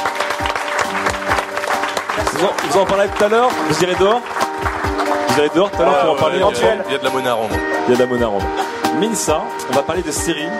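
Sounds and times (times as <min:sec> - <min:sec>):
audience applause: 0:00.0 - 0:05.8
speech: 0:02.4 - 0:04.4, 0:05.3 - 0:10.5.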